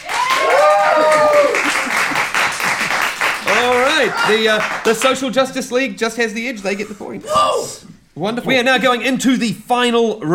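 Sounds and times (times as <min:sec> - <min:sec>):
people whooping and cheering: 0:00.0 - 0:02.2, 0:03.4 - 0:04.8
audience applause: 0:00.0 - 0:05.2
speech: 0:04.1 - 0:10.3.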